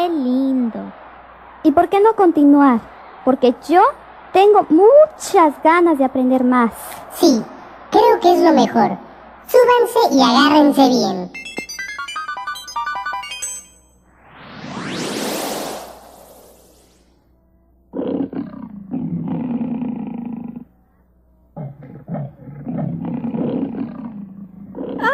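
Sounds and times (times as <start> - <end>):
speech: 1.6 - 11.4
short tonal jingle: 11.4 - 14.1
tame lion roaring: 17.9 - 20.8, 21.6 - 25.1.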